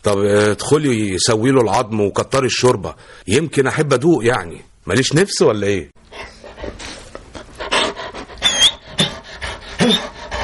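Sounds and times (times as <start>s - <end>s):
speech: 0.0s - 6.3s
pet dog panting after being given a bone: 6.1s - 10.4s.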